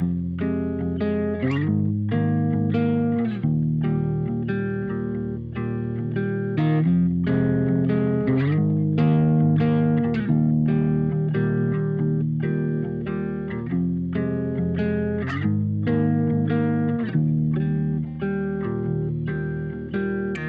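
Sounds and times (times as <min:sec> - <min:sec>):
electronic pop guitar in G Sharp Major: 0:00.0 - 0:20.4.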